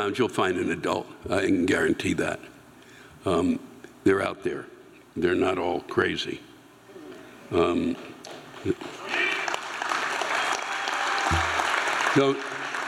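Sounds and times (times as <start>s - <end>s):
speech: 0.0s - 2.5s, 3.2s - 6.5s, 7.5s - 9.0s, 12.2s - 12.5s
audience applauding: 8.8s - 12.8s.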